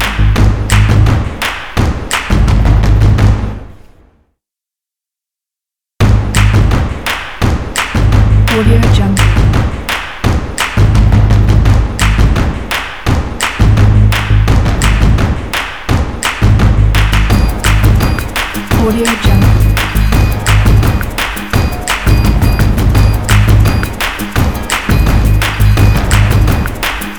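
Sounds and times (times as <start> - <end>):
hand claps: 0.0 - 2.4, 6.3 - 11.0, 11.9 - 27.1
foot stomps: 6.0 - 27.1.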